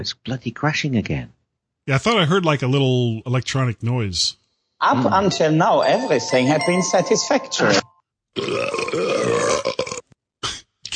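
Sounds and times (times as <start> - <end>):
speech: 0.0 - 10.0
deliberate burps from swallowed air: 8.4 - 10.6.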